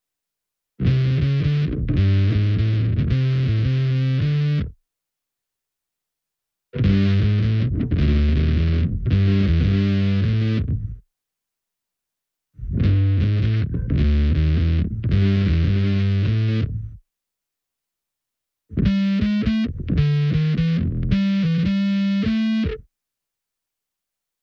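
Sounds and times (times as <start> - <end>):
bass: 0.8 - 4.8, 6.7 - 11.1, 12.6 - 17.0, 18.7 - 22.9.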